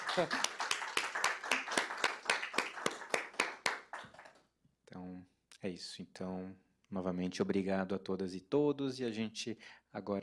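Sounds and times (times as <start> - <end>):
round of applause: 0.0 - 4.4
speech: 0.2 - 0.5, 5.6 - 10.2.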